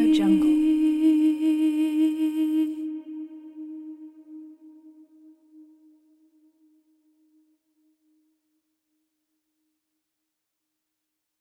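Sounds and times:
a cappella singing: 0.0 - 5.3.

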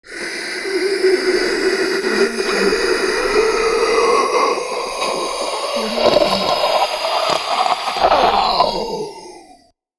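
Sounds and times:
monster in agony: 0.0 - 9.6.

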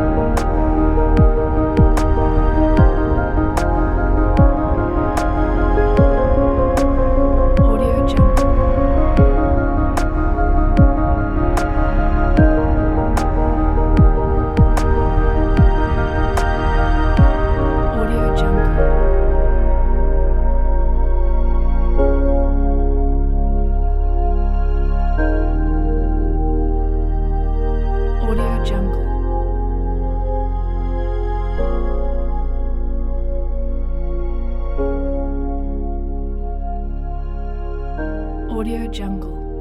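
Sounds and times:
documentary piano soundscape: 0.0 - 39.5.

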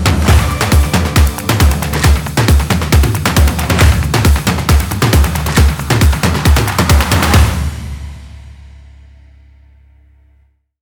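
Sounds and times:
jungle drums music kit drumming: 0.0 - 8.6.

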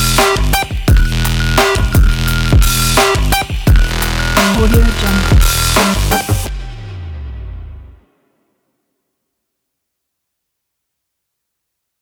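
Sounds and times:
stylish sport dirty trap music: 1.1 - 6.9.

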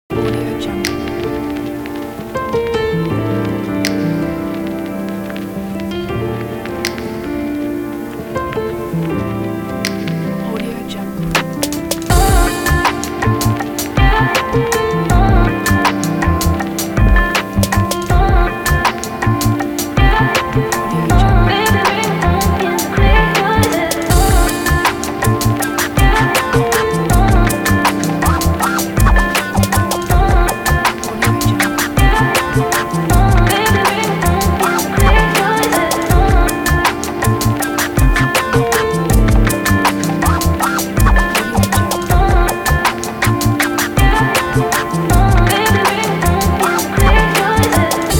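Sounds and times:
lo-fi hip hop beat: 0.1 - 48.1.

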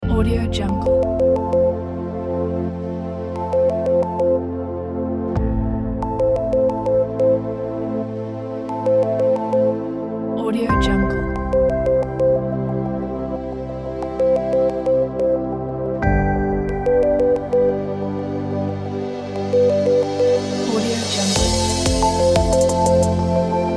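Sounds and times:
cinematic uplifting tech electronic music: 0.0 - 23.7.

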